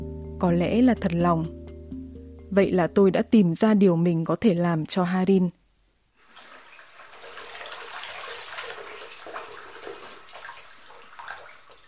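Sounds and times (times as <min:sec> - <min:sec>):
speech: 0:00.4 - 0:01.6, 0:02.5 - 0:05.6
water running as hands are washed: 0:06.2 - 0:11.8.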